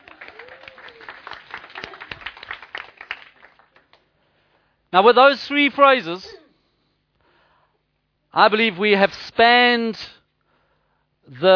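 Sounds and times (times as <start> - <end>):
two-finger round of applause: 0.0 - 4.0
speech: 4.9 - 6.3, 8.4 - 10.2, 11.3 - 11.5.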